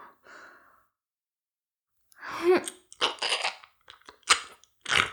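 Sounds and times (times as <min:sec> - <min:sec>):
ear licking ASMR sounds: 0:02.6 - 0:05.0.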